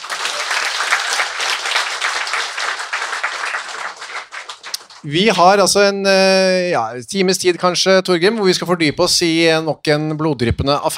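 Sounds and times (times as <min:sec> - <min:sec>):
live audience applause: 0:00.0 - 0:05.6
speech: 0:05.0 - 0:10.9.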